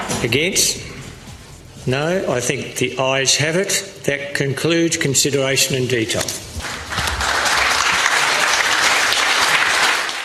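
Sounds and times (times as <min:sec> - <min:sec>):
speech: 0:00.2 - 0:00.9, 0:01.8 - 0:06.4
parliament chamber cheering and applause after vote: 0:06.6 - 0:10.2.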